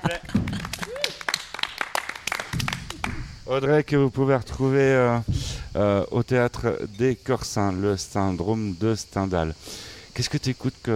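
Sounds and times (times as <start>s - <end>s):
laughter: 0.0s - 1.2s
audience applause: 0.0s - 3.4s
speech: 3.5s - 10.9s.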